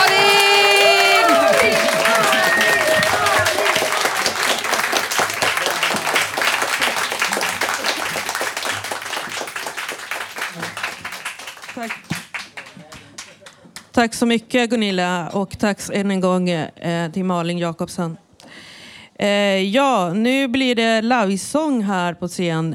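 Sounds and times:
standing audience applause: 0.0 - 13.8
speech: 14.0 - 18.2, 19.2 - 22.7.

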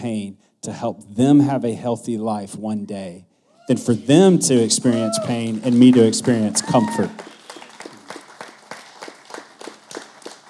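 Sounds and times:
speech: 0.0 - 7.4
audience clapping: 3.9 - 10.4.

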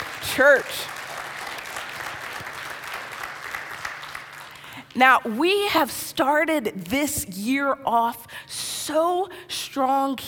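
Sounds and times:
church audience round of applause: 0.0 - 4.8
speech: 0.4 - 1.0, 5.0 - 10.2.

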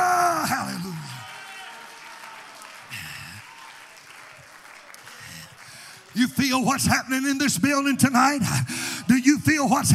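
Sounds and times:
audience clapping: 0.3 - 7.3
speech: 6.2 - 9.9.

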